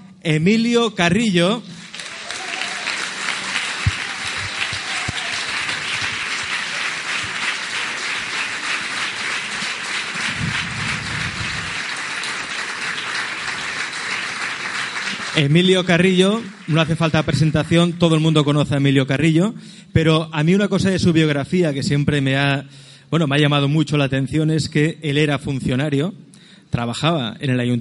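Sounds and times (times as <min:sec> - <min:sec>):
speech: 0:00.2 - 0:01.7, 0:15.4 - 0:27.7
audience applause welcoming the next speaker at a conference: 0:01.8 - 0:17.2
low rumble: 0:10.3 - 0:11.8.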